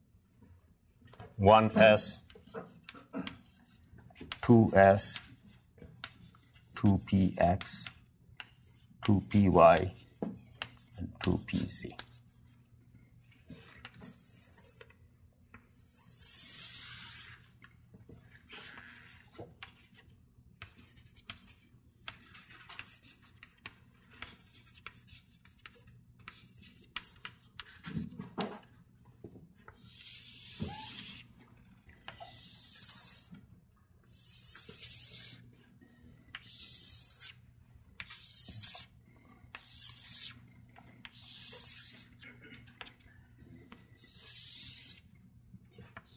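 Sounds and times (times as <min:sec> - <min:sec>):
speech: 0:01.4 - 0:03.4, 0:04.5 - 0:05.3, 0:06.8 - 0:07.9, 0:09.0 - 0:10.0, 0:11.2 - 0:12.0
pen scratching across paper writing a matrix by hand: 0:04.9 - 0:12.3, 0:15.7 - 0:17.4, 0:18.5 - 0:20.0, 0:20.6 - 0:28.0, 0:29.8 - 0:31.3, 0:32.1 - 0:33.3, 0:34.1 - 0:35.5, 0:36.4 - 0:37.4, 0:38.0 - 0:38.9, 0:39.5 - 0:40.4, 0:41.0 - 0:42.2, 0:44.0 - 0:45.0.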